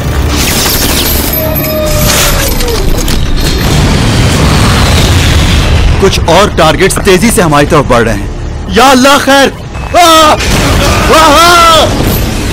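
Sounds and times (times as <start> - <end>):
missile explosions: 0.2 - 6.8, 10.3 - 12.5
speech: 6.0 - 12.1.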